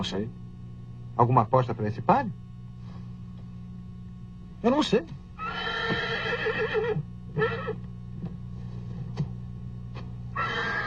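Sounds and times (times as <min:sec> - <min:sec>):
speech: 0:00.0 - 0:00.4, 0:01.2 - 0:02.4, 0:04.6 - 0:05.2, 0:05.9 - 0:07.9
horse neighing in a dubbed film scene: 0:05.4 - 0:07.8, 0:10.4 - 0:10.8.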